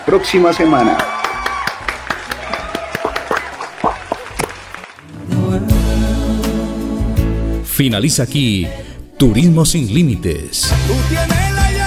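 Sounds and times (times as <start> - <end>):
speech: 0.1 - 1.2, 7.8 - 11.6
hand clapping: 1.0 - 5.1
music with a low steady tone: 5.1 - 11.8.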